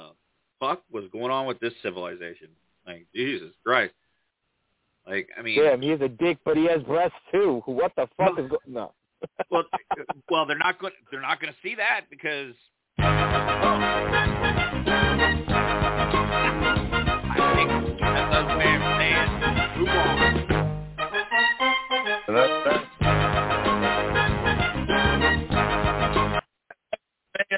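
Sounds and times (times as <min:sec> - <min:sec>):
speech: 0:00.6 - 0:04.0, 0:05.0 - 0:14.6
laughter: 0:07.9 - 0:10.6
segment jingle, full-band music: 0:13.0 - 0:26.4.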